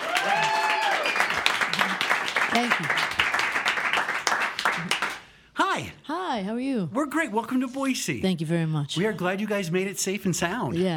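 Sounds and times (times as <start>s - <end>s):
live audience applauding and clapping: 0.0s - 5.4s
speech: 2.6s - 3.2s, 5.8s - 10.9s.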